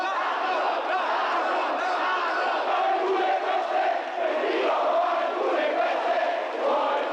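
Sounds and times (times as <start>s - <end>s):
dense crowd shouting outside a hotel: 0.0s - 7.1s.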